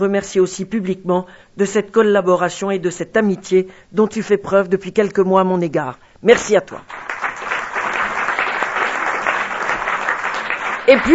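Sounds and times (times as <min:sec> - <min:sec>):
speech: 0:00.0 - 0:07.0, 0:10.9 - 0:11.1
audience applause: 0:06.9 - 0:11.1.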